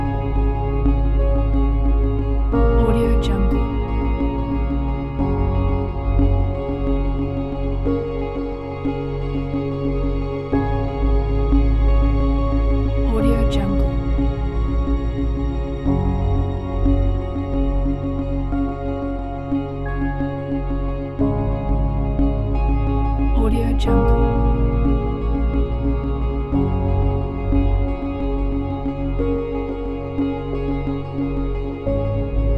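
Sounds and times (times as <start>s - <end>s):
documentary ambient piano background music: 0.0s - 32.5s.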